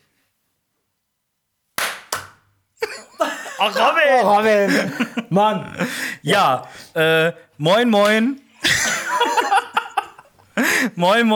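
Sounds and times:
hand clapping to a beat: 1.8s - 2.5s, 8.0s - 8.2s
laughter: 2.8s - 6.4s, 8.6s - 11.0s
speech: 3.6s - 8.8s, 10.8s - 11.3s.

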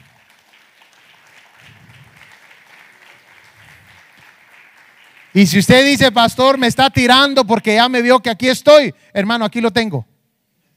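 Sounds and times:
audience applause: 0.0s - 6.6s
speech: 5.4s - 10.1s.

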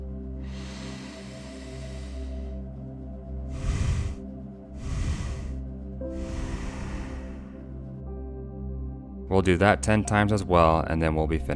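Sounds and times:
low tonal drone: 0.0s - 9.2s
breathy exhales in Viloma breathing: 0.4s - 2.6s, 3.4s - 8.0s
nasal inhale in Viloma breathing: 0.4s - 2.8s, 3.4s - 8.0s
speech: 9.3s - 11.5s.

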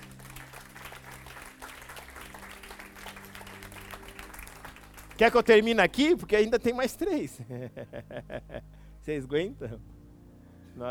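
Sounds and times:
audience applauding: 0.0s - 7.1s
speech: 5.2s - 10.0s
laughter: 7.0s - 8.7s.

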